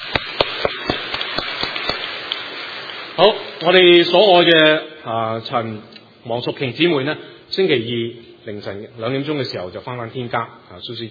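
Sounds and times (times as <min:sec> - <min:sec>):
audience applauding: 0:00.0 - 0:03.0
speech: 0:03.2 - 0:11.0.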